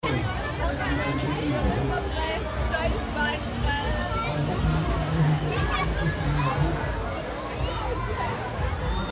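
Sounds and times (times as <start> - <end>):
murmur of crowd voices: 0.0 - 9.0.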